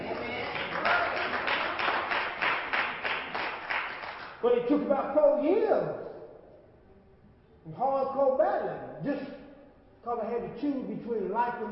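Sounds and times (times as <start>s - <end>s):
hand claps: 0.0s - 4.4s
faint hum: 0.0s - 11.7s
speech: 4.4s - 6.1s, 7.7s - 9.3s, 10.0s - 11.7s.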